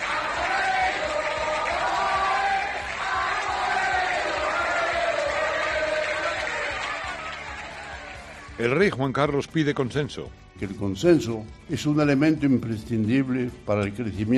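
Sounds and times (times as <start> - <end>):
crowd cheering: 0.0 - 8.6
speech: 8.6 - 14.3.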